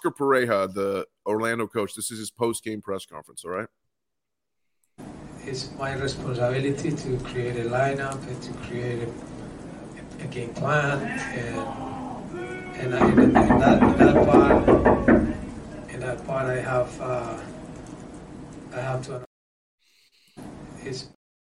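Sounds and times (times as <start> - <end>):
speech: 0.0 - 3.8, 5.5 - 9.4, 10.2 - 17.6, 18.7 - 19.3, 20.4 - 21.2
people booing: 11.0 - 15.6
people banging on glass: 12.9 - 15.6.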